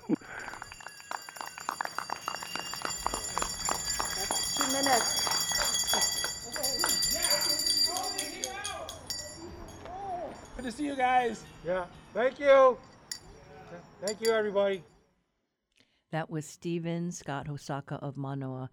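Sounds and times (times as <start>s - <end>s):
people clapping: 0.0s - 10.0s
bells ringing: 0.0s - 14.7s
speech: 11.0s - 12.9s, 14.0s - 14.9s, 16.1s - 18.7s.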